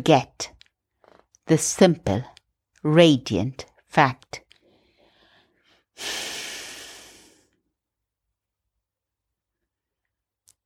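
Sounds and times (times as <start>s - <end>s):
speech: 0.0s - 0.4s, 1.5s - 4.4s, 6.0s - 6.4s
soft breath: 4.6s - 7.6s
slow long exhale during a guided Christian prayer: 6.0s - 7.6s.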